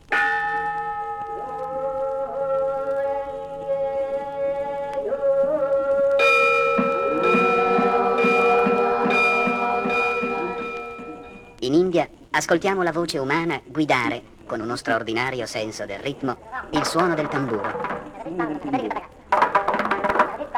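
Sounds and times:
temple bells: 0.0s - 3.0s, 6.2s - 11.6s, 16.8s - 20.2s
Buddhist monks chanting: 0.6s - 11.6s, 15.9s - 20.4s
speech: 12.4s - 19.1s.

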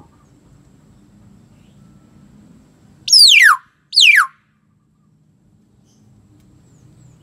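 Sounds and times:
common hill myna giving loud swooping whistles: 3.1s - 4.3s.

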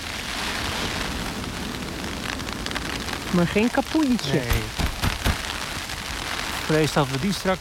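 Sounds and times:
hail from a winter shower pelting an umbrella: 0.0s - 7.5s
speech: 3.3s - 4.8s, 6.7s - 7.5s.

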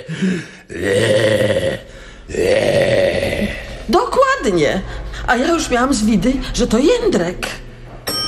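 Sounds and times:
speech: 0.1s - 1.1s, 4.5s - 7.6s
loud raspy snoring: 0.7s - 3.9s.

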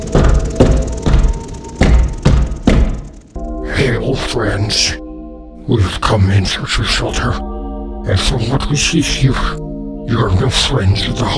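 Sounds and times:
heavy knocks on a door: 0.0s - 3.2s
speech: 4.1s - 5.0s, 5.7s - 11.3s.

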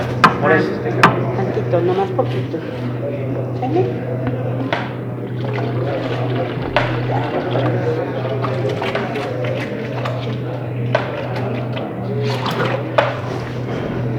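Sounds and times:
speech: 0.5s - 3.0s, 3.7s - 4.2s
water poured from a jug: 4.5s - 14.1s.

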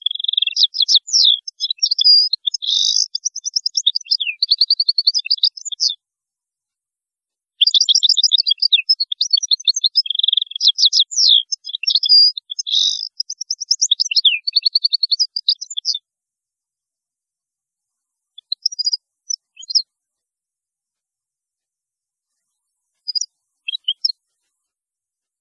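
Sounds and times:
European goldfinch twittering song: 0.0s - 6.0s, 7.6s - 16.0s, 18.4s - 19.9s, 23.0s - 24.2s.

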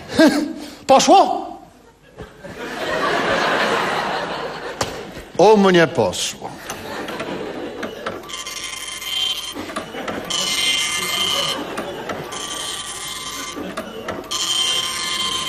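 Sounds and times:
speech: 0.2s - 1.5s, 5.4s - 6.8s
laughter: 1.6s - 5.4s, 6.4s - 8.6s, 9.3s - 15.4s
old printer printing a receipt: 6.6s - 15.4s.

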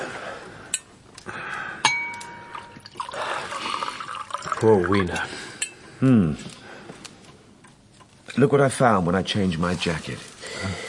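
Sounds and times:
drink being poured into a glass: 2.4s - 5.2s
speech: 4.6s - 5.4s, 6.0s - 6.6s, 8.4s - 10.8s.

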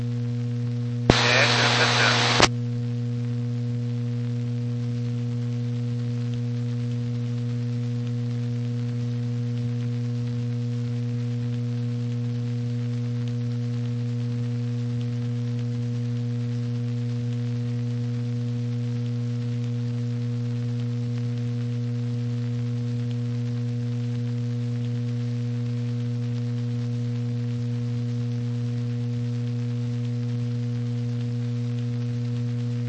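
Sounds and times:
loud constant low electrical hum: 0.0s - 32.8s
harsh burst of noise: 1.1s - 2.5s
light rain hissing: 1.1s - 2.5s.

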